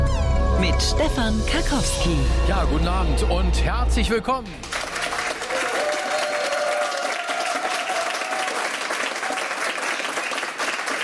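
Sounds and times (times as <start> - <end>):
speech: 0.6 - 4.8
applause: 4.6 - 11.0.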